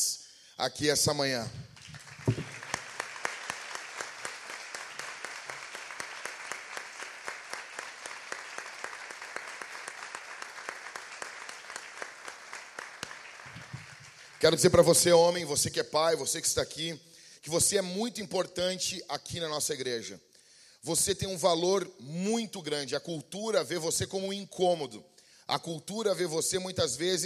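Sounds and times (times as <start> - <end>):
speech: 0.6 - 2.0, 14.5 - 27.2
audience applauding: 1.7 - 14.9.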